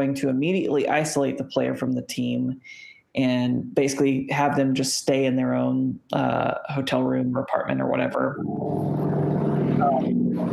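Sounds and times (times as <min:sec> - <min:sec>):
speech: 0:00.0 - 0:09.2
motorcycle passing outside: 0:08.4 - 0:10.5.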